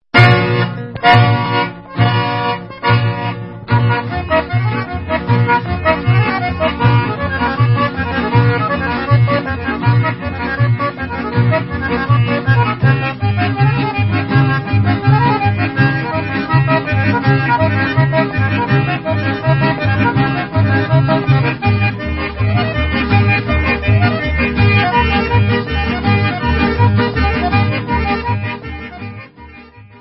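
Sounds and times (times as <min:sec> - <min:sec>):
folk instrumental music: 0:00.1 - 0:29.9.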